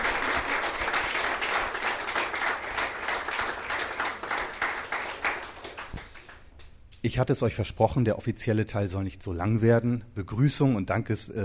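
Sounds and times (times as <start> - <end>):
audience applause: 0.0 - 6.4
speech: 7.0 - 11.4.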